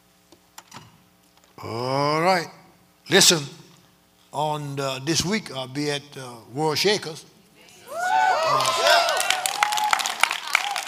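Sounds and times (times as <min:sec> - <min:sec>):
speech: 0:01.6 - 0:03.6, 0:04.3 - 0:07.3
audience cheering: 0:07.8 - 0:10.8
audience clapping: 0:08.2 - 0:10.8.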